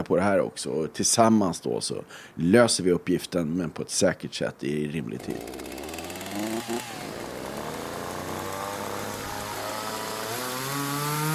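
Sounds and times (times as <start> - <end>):
speech: 0.0 - 5.8, 6.6 - 7.1
several chainsaws revving: 5.2 - 11.3.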